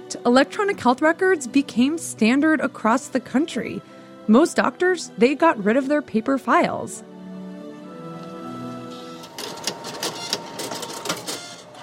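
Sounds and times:
speech: 0.2s - 7.1s
fax machine printing: 8.8s - 11.8s.

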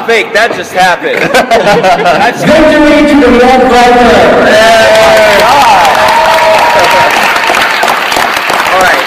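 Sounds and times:
speech: 0.1s - 5.6s
laughter: 1.0s - 2.5s
audience applause: 4.5s - 9.0s.

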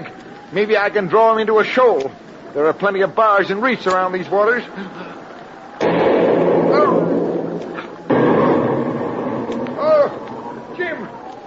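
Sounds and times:
speech: 0.5s - 5.2s
artillery shell explosions near a boat: 5.8s - 11.2s.

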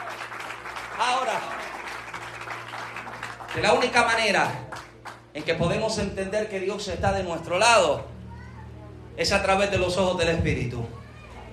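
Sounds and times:
crowd clapping: 0.0s - 6.0s
speech: 3.6s - 4.6s, 5.3s - 8.1s, 9.2s - 11.0s.

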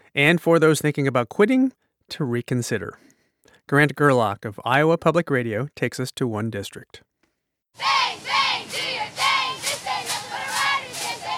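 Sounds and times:
speech: 0.2s - 3.1s, 3.7s - 7.1s, 7.7s - 8.0s
crowd chanting and shouting at a Roosevelt High School football scrimmage in Des Moines: 7.8s - 11.3s.

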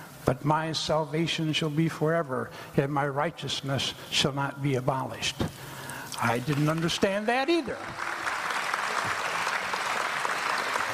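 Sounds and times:
speech: 0.3s - 8.2s
audience applause: 7.6s - 10.9s.

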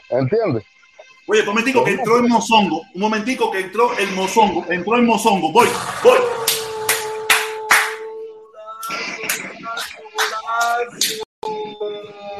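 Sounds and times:
speech: 0.1s - 6.6s
hand clapping: 6.4s - 8.1s, 8.8s - 11.3s.

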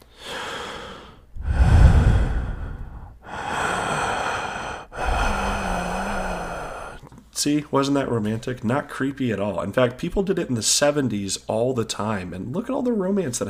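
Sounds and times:
heavy breathing into a phone: 0.0s - 7.1s
speech: 7.4s - 13.4s.

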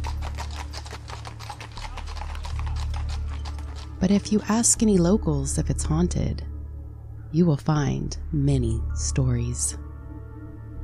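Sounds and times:
low rumble of stagecoach wheels: 0.0s - 5.2s
horse hooves clip-clopping of a stagecoach pulling into town: 0.0s - 6.0s
speech: 4.0s - 6.5s, 7.3s - 9.9s.

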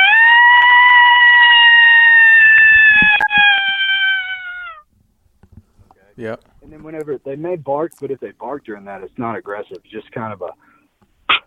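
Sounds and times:
cat's subtle interrogation howl: 0.0s - 4.8s
speech: 6.2s - 10.7s.

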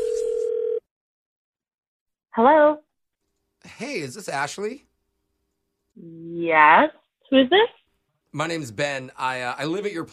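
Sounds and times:
telephone dial tone: 0.0s - 0.8s
speech: 2.4s - 2.8s, 3.6s - 4.9s, 6.0s - 10.1s.

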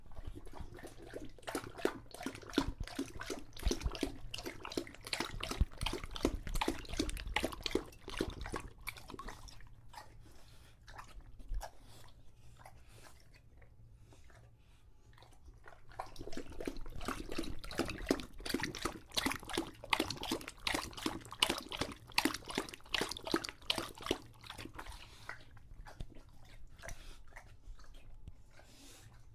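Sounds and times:
English Bulldog lapping water: 0.0s - 29.3s.

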